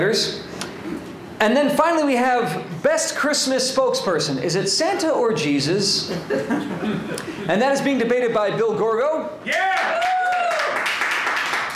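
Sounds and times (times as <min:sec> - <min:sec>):
speech: 0:00.0 - 0:10.1
laughter: 0:06.1 - 0:07.5
crowd clapping and cheering: 0:09.5 - 0:11.7.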